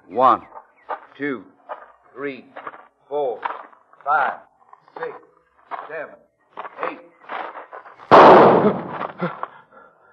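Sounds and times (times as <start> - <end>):
speech: 0.1 - 0.6, 1.2 - 1.5, 2.2 - 6.2, 8.6 - 9.4
pistol shot in a duel: 8.1 - 9.1.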